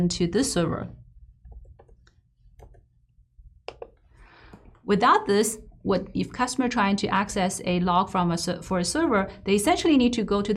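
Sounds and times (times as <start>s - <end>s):
speech: 0.0s - 1.0s, 4.9s - 10.5s
computer mouse clicks: 1.5s - 2.9s.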